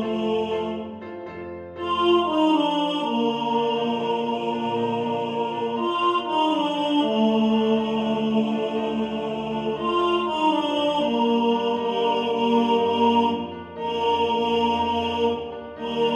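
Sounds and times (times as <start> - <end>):
tenor voice singing in the foreground: 0.0 - 1.0, 1.8 - 16.1.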